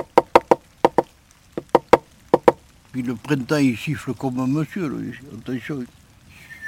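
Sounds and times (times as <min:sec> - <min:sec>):
dry knocks on wood imitating a woodpecker pecking at a tree: 0:00.0 - 0:02.6
speech: 0:03.0 - 0:06.0.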